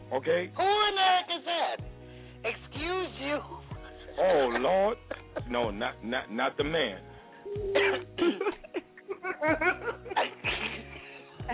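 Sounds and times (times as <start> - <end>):
speech: 0.1 - 3.6, 4.2 - 8.5, 9.4 - 10.4
laughter: 3.8 - 5.5, 7.7 - 11.5
person sneezing: 7.6 - 8.7, 10.2 - 10.9.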